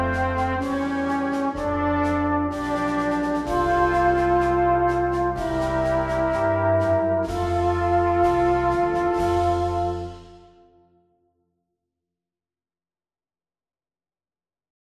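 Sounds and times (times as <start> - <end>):
national anthem: 0.0 - 10.8.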